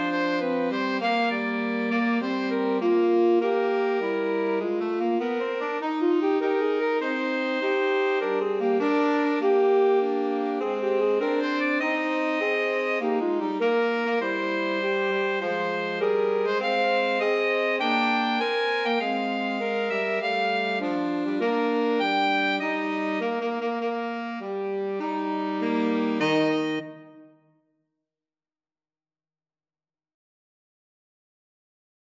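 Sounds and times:
alto saxophone: 0.0 - 27.5.

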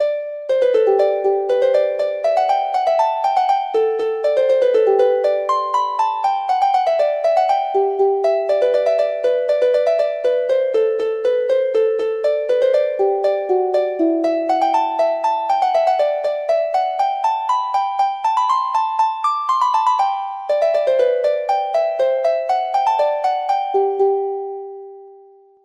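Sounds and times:
harp: 0.0 - 25.6.

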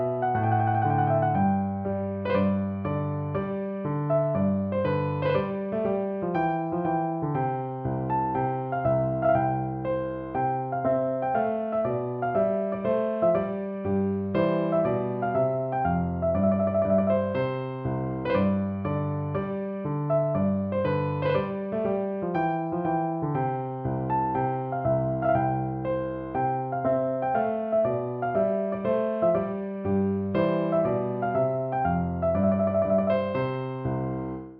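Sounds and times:
tune on piano: 0.0 - 34.5.

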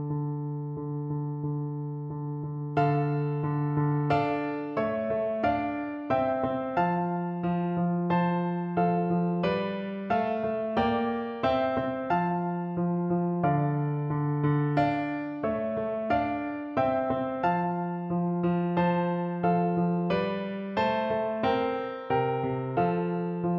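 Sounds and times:
pavane played on piano: 0.0 - 23.5.

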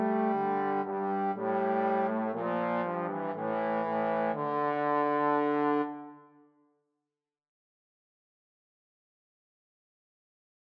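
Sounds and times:
trombone trio: 0.0 - 6.0.

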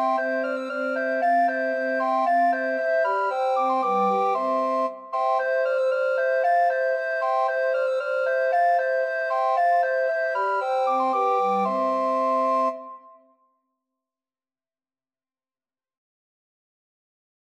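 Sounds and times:
recorder quartet: 0.0 - 12.8.

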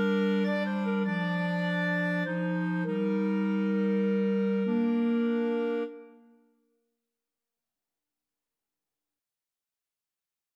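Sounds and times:
clarinet trio: 0.0 - 6.2.

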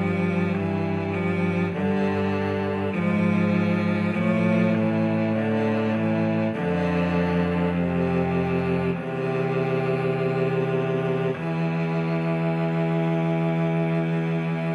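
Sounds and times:
cello trio playing: 0.0 - 14.7.

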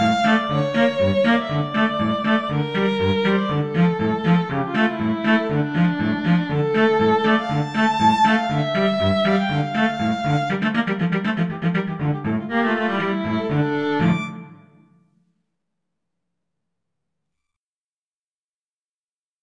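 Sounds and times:
violin and cello duet of a classical dance piece: 0.0 - 14.7.

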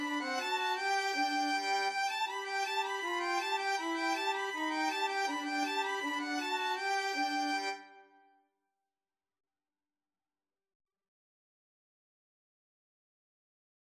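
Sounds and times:
violin duet: 0.0 - 8.0.

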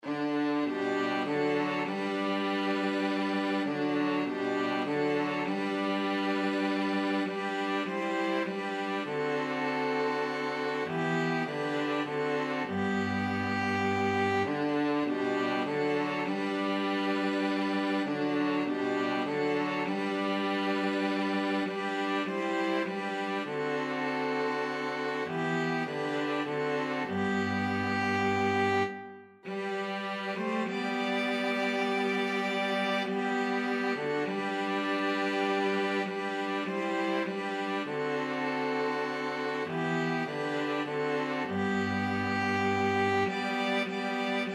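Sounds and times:
string quartet: 0.0 - 44.5.

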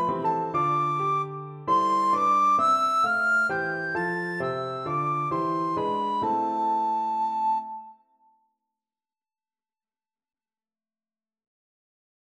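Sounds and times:
recorder playing: 0.0 - 7.9.

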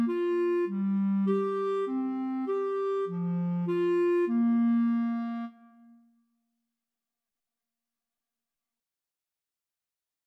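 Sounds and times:
flute and clarinet duet: 0.0 - 5.7.

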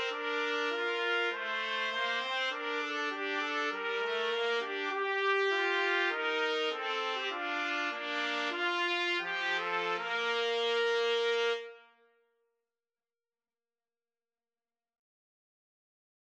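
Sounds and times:
national anthem played as trumpet duet: 0.0 - 12.0.

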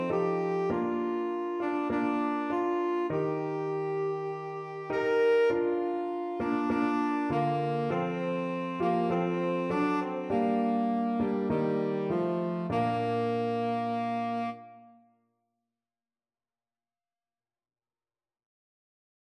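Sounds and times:
tenor saxophone: 0.0 - 15.1.

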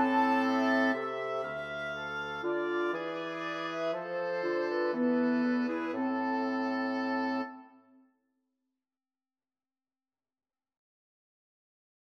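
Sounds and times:
wind quartet playing a concerto grosso: 0.0 - 7.8.

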